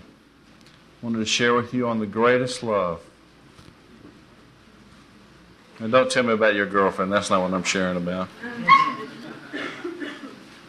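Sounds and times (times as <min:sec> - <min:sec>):
speech: 0:01.0 - 0:03.1, 0:05.8 - 0:08.7
laughter: 0:08.4 - 0:10.6
puppy yipping: 0:08.6 - 0:09.1.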